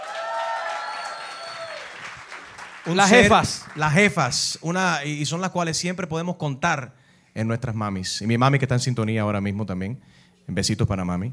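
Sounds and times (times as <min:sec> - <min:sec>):
group applauding: 0:00.0 - 0:04.7
speech: 0:02.8 - 0:11.3.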